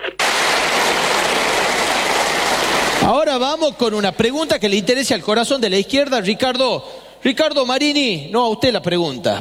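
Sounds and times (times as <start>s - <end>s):
applause: 0.2s - 3.2s
speech: 3.3s - 9.3s.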